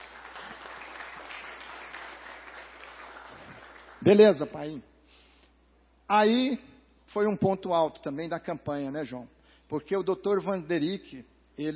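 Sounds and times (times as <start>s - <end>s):
audience applause: 0.0s - 4.1s
speech: 4.0s - 4.9s, 6.1s - 11.7s.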